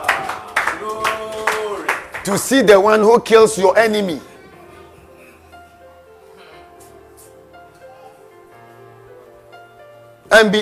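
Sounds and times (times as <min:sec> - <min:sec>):
audience clapping: 0:00.0 - 0:02.6
speech: 0:02.3 - 0:04.3, 0:10.4 - 0:10.5.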